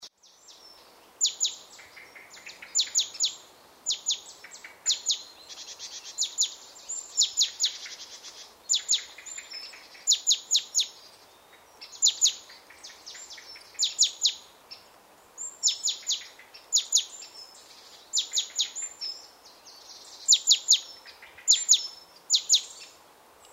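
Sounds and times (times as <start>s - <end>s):
steady low hiss: 0.1s - 23.5s
great tit calls: 0.4s - 23.5s.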